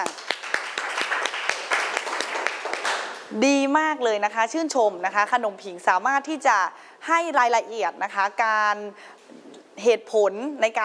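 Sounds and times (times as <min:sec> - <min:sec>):
applause: 0:00.0 - 0:03.3
speech: 0:03.3 - 0:09.1, 0:09.8 - 0:10.8.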